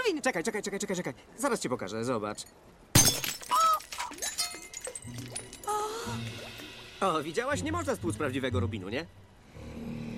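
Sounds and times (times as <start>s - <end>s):
speech: 0.1s - 2.8s, 5.1s - 5.3s, 7.0s - 10.0s
glass shattering: 2.9s - 5.8s.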